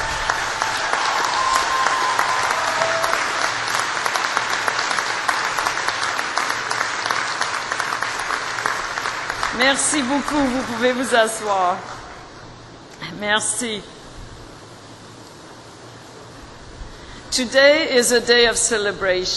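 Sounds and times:
audience applause: 0:00.0 - 0:11.2
speech: 0:09.6 - 0:12.0, 0:13.2 - 0:14.0, 0:17.4 - 0:19.3.

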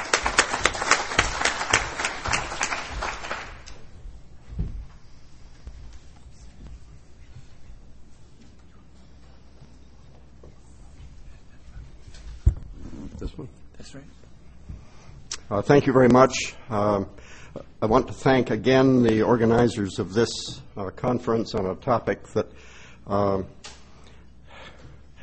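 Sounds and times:
audience applause: 0:00.0 - 0:03.9
speech: 0:15.5 - 0:23.6.

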